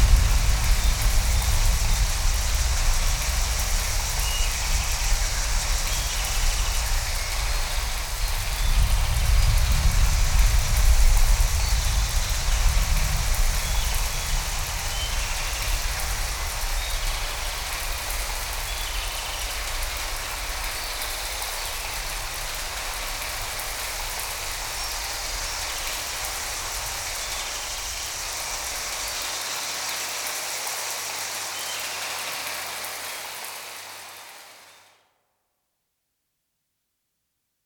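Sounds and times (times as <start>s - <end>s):
rain: 0.0s - 35.0s.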